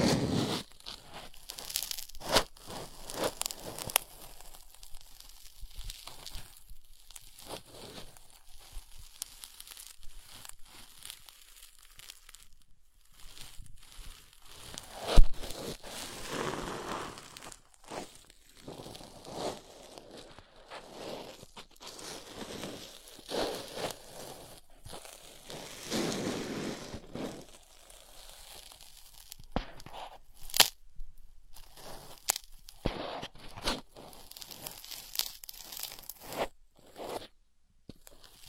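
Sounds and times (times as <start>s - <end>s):
ear scratching and picking: 0.0s - 4.4s, 13.3s - 30.7s, 31.6s - 37.4s.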